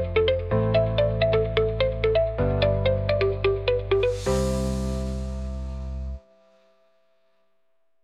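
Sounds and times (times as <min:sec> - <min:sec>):
techno tango music: 0:00.0 - 0:06.2.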